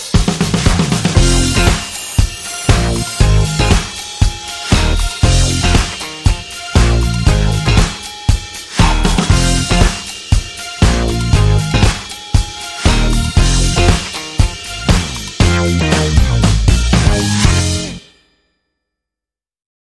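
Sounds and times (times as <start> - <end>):
bass: 0.0 - 1.9, 2.7 - 4.0, 4.7 - 8.0, 8.7 - 10.1, 10.8 - 12.1, 12.8 - 18.0.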